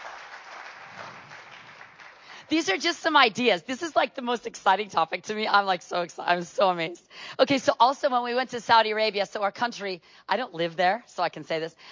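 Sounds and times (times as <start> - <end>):
audience clapping: 0.0 - 2.5
speech: 2.5 - 11.9.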